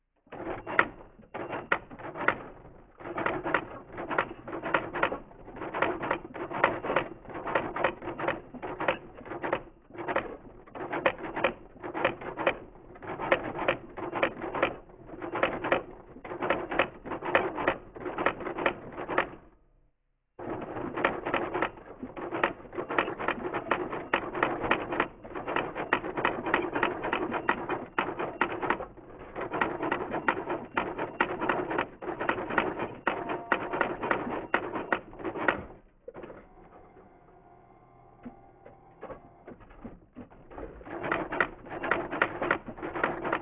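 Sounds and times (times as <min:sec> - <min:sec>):
typewriter: 0:00.3 - 0:19.5, 0:20.4 - 0:36.4, 0:39.0 - 0:43.4.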